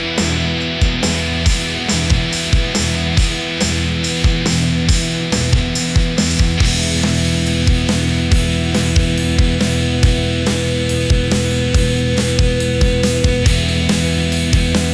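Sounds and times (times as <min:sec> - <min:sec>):
energetic rock music: 0:00.0 - 0:14.9.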